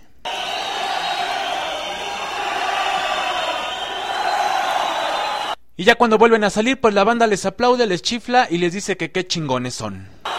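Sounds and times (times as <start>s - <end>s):
large concert crowd chanting in unison: 0.3s - 5.6s
speech: 5.8s - 10.2s.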